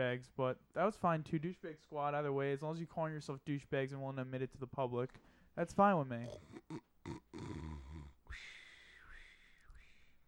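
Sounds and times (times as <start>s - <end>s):
speech: 0.0s - 6.9s
person imitating snoring: 6.2s - 8.2s.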